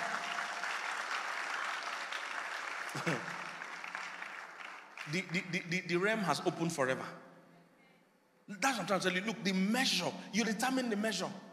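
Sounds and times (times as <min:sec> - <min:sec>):
audience clapping: 0:00.0 - 0:05.6
speech: 0:03.0 - 0:03.3, 0:05.0 - 0:07.3, 0:08.5 - 0:11.4.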